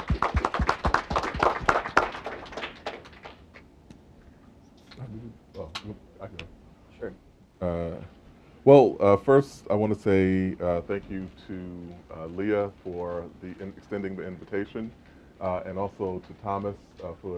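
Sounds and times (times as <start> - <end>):
small group applauding: 0.0 - 3.7
speech: 8.7 - 17.3.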